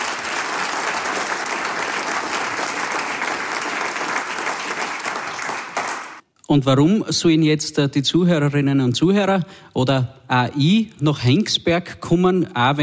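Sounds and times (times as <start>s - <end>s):
audience applause: 0.0s - 6.2s
speech: 6.5s - 12.8s.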